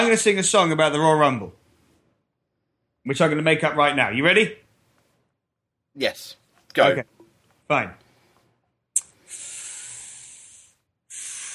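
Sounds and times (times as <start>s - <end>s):
speech: 0.0s - 1.6s, 3.0s - 4.6s, 6.0s - 7.1s, 7.7s - 8.0s
person breathing into microphone: 9.1s - 11.5s.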